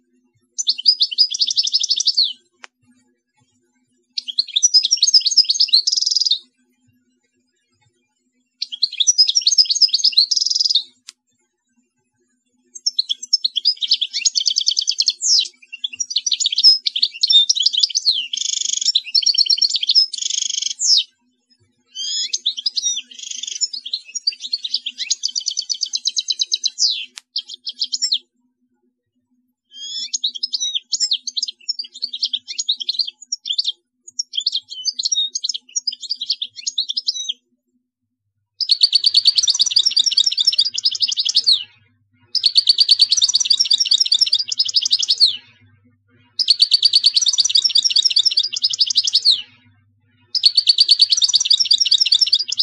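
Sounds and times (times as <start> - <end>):
European goldfinch singing: 0.6 - 2.4, 4.2 - 6.4, 8.6 - 11.0, 12.8 - 21.1, 21.9 - 28.2, 29.8 - 37.4, 38.6 - 45.6, 46.3 - 49.6, 50.3 - 52.6.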